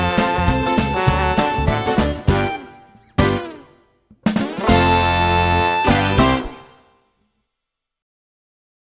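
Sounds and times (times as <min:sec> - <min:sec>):
backing music: 0:00.0 - 0:07.0.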